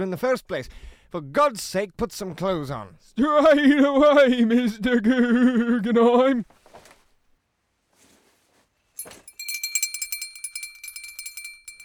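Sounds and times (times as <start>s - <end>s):
speech: 0.0s - 6.6s
bedtime bell ringing: 9.0s - 11.8s.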